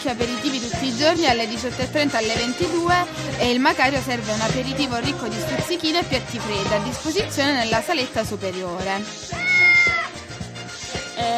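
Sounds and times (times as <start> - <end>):
speech: 0.0 - 9.4
cats meowing: 9.4 - 10.2.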